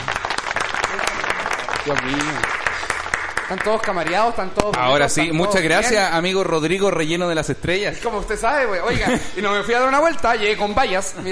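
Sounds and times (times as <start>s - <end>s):
steady applause from many hands: 0.0s - 4.7s
speech: 1.8s - 2.6s, 3.5s - 11.3s
laughter: 8.8s - 10.0s.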